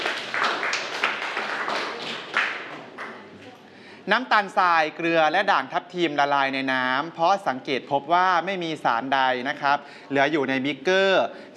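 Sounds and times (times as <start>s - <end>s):
students clapping for a classmate: 0.0s - 3.3s
speech: 4.0s - 11.5s.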